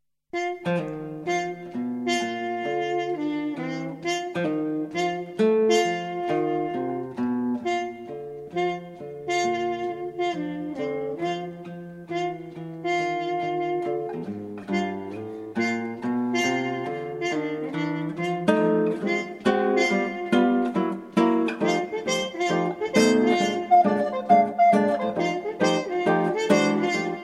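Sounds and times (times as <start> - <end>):
blues trio playing: 0.4 - 27.2.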